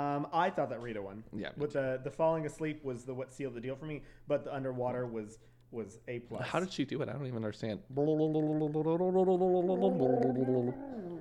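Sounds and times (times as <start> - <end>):
speech: 0.0 - 11.1
person gargling: 8.0 - 11.1.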